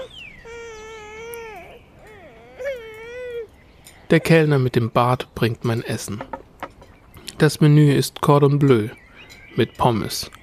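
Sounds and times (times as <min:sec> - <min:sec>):
small child screaming and crying: 0:00.0 - 0:03.5
speech: 0:04.1 - 0:06.4, 0:07.4 - 0:09.0, 0:09.6 - 0:10.4.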